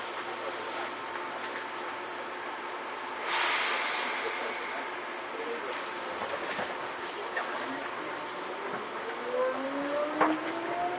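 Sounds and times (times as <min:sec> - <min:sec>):
Seibu old 2000 series train between Seibu-Shinjuku and Hon-Kawagoe: 0:00.0 - 0:10.9
rising whine: 0:09.0 - 0:10.9.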